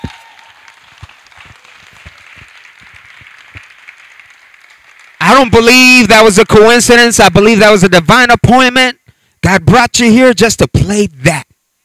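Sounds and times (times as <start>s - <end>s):
audience applauding: 0.0s - 6.4s
speech: 5.4s - 11.5s.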